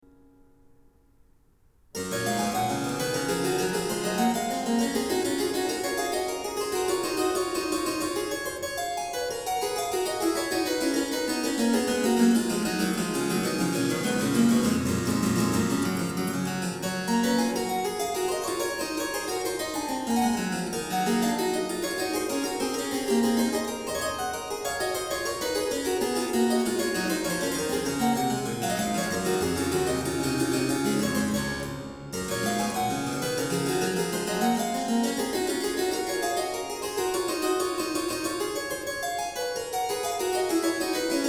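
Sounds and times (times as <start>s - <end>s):
harpsichord: 2.0s - 41.2s.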